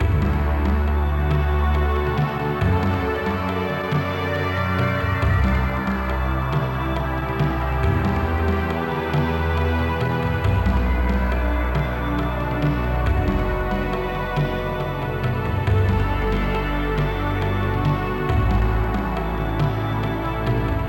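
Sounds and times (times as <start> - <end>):
main music loop: 0.0 - 20.8.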